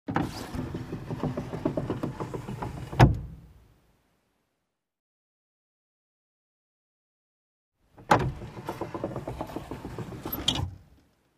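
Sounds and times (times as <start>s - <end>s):
car glass window lowered and raised manually: 0.1s - 3.4s, 8.0s - 10.8s.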